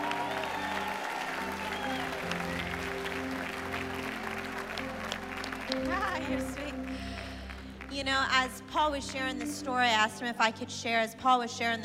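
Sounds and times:
audience cheering: 0.0 - 6.8
audience applause: 0.0 - 7.9
speech: 8.0 - 11.8.

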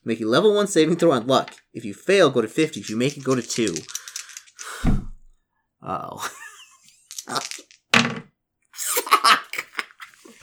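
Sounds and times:
speech: 0.0 - 4.0, 5.8 - 6.4, 7.3 - 7.7
dice rolling: 2.7 - 4.9, 6.9 - 8.2
laughter: 6.1 - 7.6, 8.8 - 10.4.

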